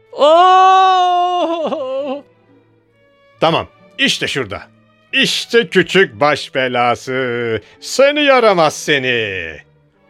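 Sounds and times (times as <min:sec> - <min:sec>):
sexton crying out in pain: 0:00.1 - 0:02.3
speech: 0:00.2 - 0:00.6, 0:03.4 - 0:09.7.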